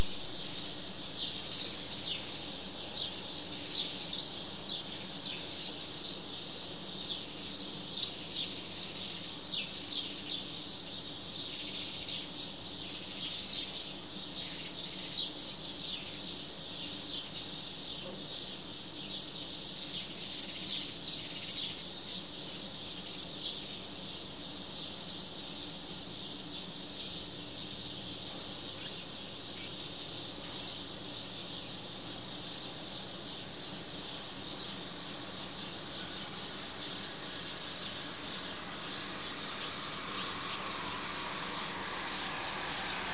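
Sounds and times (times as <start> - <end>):
flock of little birds: 0.0 - 43.1.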